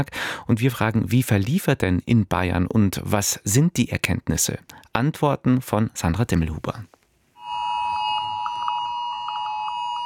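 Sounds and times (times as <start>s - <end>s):
speech: 0.0s - 7.0s
several mobile phones sounding emergency alerts in Bayerischer Rundfunk office: 7.4s - 10.0s.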